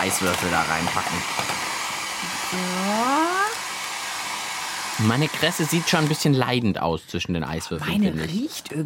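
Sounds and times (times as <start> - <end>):
speech: 0.0 - 1.6, 2.5 - 3.6, 5.0 - 8.8
hair dryer blowing on cress: 0.0 - 6.4.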